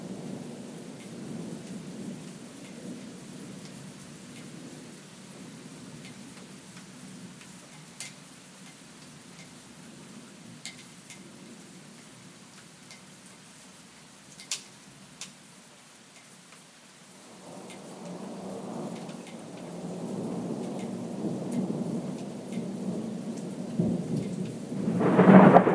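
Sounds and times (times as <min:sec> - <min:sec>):
thunderstorm: 0:00.0 - 0:06.2, 0:17.2 - 0:25.7.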